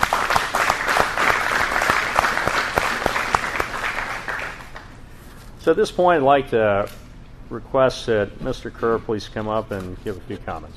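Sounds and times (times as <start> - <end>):
audience applause: 0.0 - 4.9
speech: 5.6 - 10.7.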